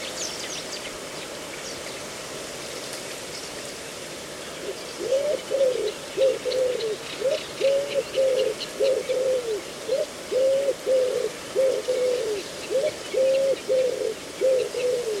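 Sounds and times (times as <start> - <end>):
cooing bird call in a reedbed at Slapton Ley, Devon, at dawn: 4.6 - 15.1.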